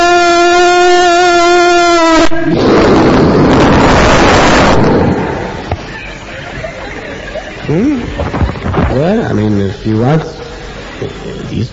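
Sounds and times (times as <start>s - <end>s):
steady buzzing tone: 0.0s - 11.7s
bomb blast: 2.1s - 5.9s
laughter: 5.8s - 8.9s
speech: 9.4s - 10.4s, 11.0s - 11.7s.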